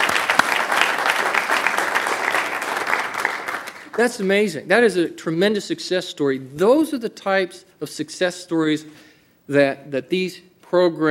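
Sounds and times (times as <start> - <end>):
audience applause: 0.0 - 4.0
speech: 4.0 - 11.0.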